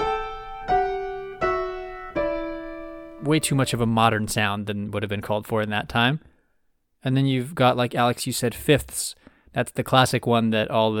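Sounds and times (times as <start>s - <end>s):
piano playing two voices in parallel sevenths: 0.0s - 4.6s
speech: 3.2s - 6.3s, 7.0s - 10.9s.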